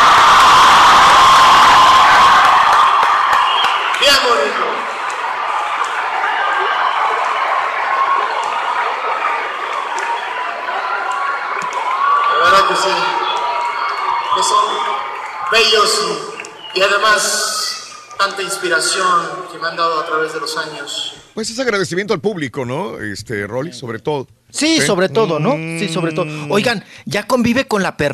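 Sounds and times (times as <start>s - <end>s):
loud audience applause and cheering: 0.0s - 19.6s
speech: 16.8s - 17.4s, 18.2s - 28.1s.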